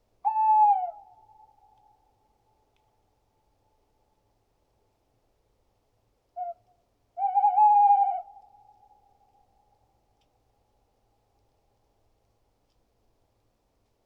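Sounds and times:
tawny owl Strix aluco: 0.2s - 1.8s, 6.4s - 9.0s.

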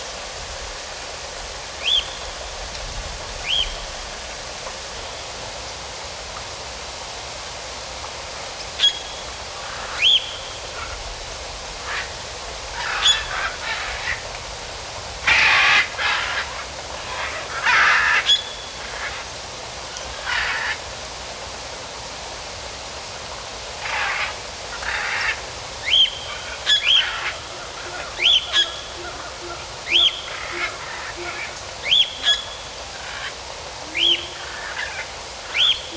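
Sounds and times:
rain in a forest: 0.0s - 35.9s
birds singing in a forest: 1.8s - 2.7s, 3.4s - 4.1s, 8.6s - 11.2s, 11.8s - 14.4s, 15.2s - 19.4s, 23.8s - 35.9s.

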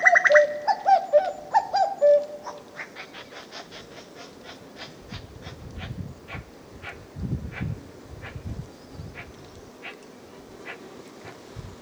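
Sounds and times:
common cuckoo Cuculus canorus calling: 0.0s - 5.9s.

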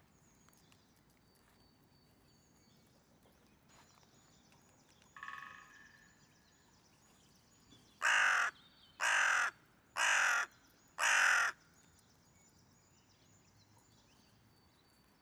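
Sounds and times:
hooded crow Corvus cornix cornix calling: 8.0s - 11.6s.

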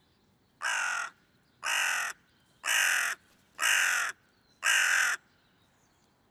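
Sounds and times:
hooded crow Corvus cornix cornix calling: 0.6s - 5.3s.

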